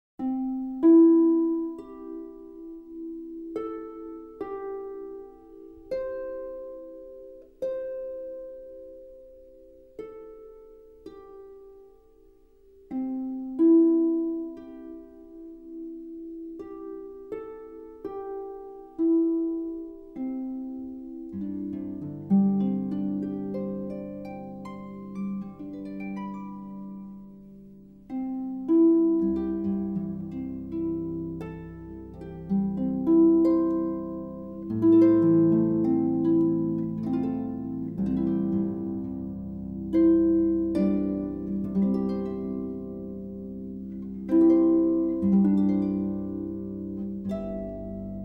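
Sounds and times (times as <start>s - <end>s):
instrumental harp praise music: 0.2s - 48.2s.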